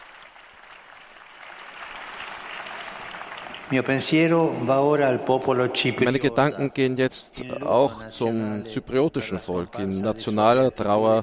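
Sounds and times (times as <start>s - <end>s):
crowd applause: 0.0s - 6.4s
speech: 3.7s - 11.2s.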